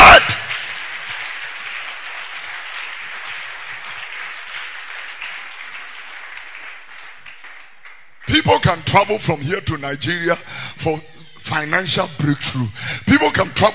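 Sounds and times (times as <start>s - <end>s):
crowd clapping hands: 0.0s - 9.1s
speech: 8.7s - 13.7s.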